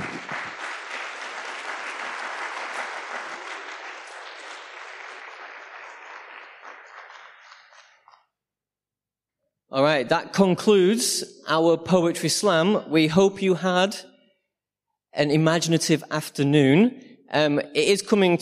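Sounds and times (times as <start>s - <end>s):
audience round of applause: 0.0s - 8.2s
speech: 9.7s - 14.1s, 15.2s - 18.3s.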